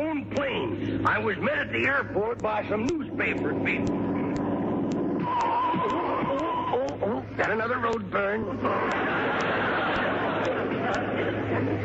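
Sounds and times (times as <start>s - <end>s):
murmur of many voices: 0.0s - 11.8s
speech: 1.1s - 4.1s, 7.0s - 11.8s
faint sharp clicks: 2.4s - 8.0s
laughter: 5.6s - 6.8s, 8.4s - 11.8s.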